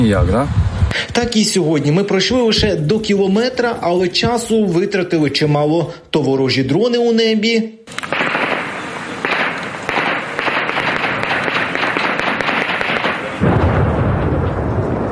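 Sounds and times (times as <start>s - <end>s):
speech: 0.0s - 8.1s
artillery shells exploding: 7.9s - 15.0s.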